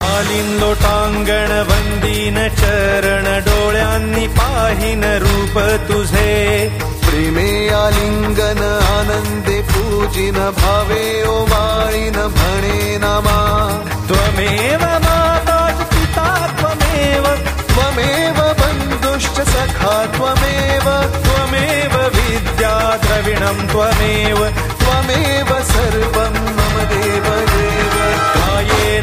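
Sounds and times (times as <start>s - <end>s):
aarti devotional singing: 0.0s - 29.0s.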